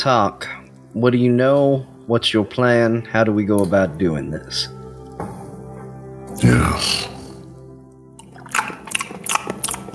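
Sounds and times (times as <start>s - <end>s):
speech: 0.0s - 4.8s, 6.4s - 7.1s
wet chewing of nuts and bolts fried in motor oil: 8.2s - 9.9s.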